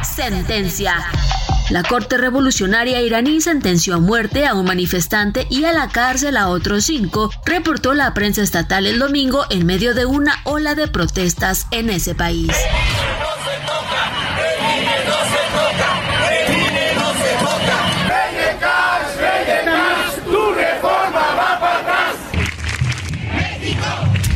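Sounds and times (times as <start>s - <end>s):
speech: 0.2s - 13.0s
street protest crowd chanting political slogans: 12.5s - 22.3s, 23.2s - 24.2s.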